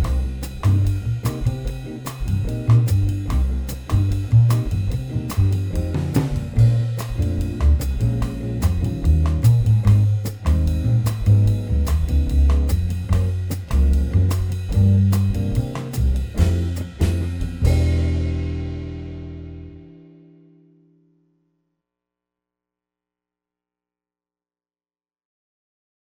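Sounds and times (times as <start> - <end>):
muted piano in a latin rhythm section: 0.0 - 19.9.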